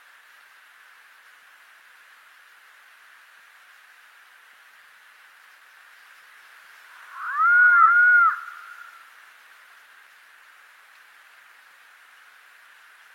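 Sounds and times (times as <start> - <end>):
Andean potoo calling: 6.9 - 9.0.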